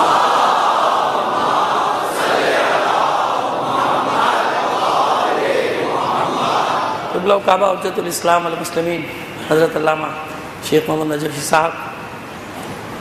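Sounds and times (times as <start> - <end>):
crowd at a religious gathering chanting salawat: 0.0 - 7.4
speech: 7.3 - 12.0.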